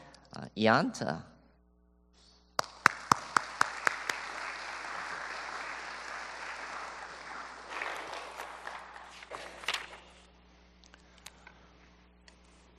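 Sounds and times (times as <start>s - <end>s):
speech: 0.6s - 1.3s
crowd applauding welcoming a speaker: 2.6s - 9.3s.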